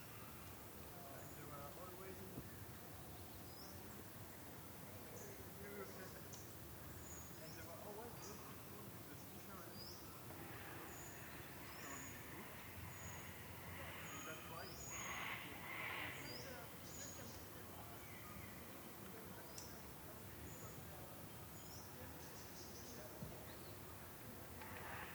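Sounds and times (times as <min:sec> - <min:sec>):
people at a creek bed in Australia: 0:00.1 - 0:25.1
cockatoos calling at dusk in a creek bed in Australia: 0:10.3 - 0:16.9.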